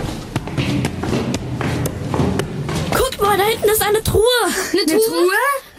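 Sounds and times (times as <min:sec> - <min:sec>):
footsteps of several people climbing a staircase: 0:00.0 - 0:03.6
speech: 0:03.9 - 0:05.6.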